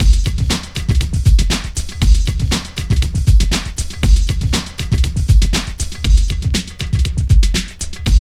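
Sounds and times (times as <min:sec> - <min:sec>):
music loop: 0:00.0 - 0:08.1.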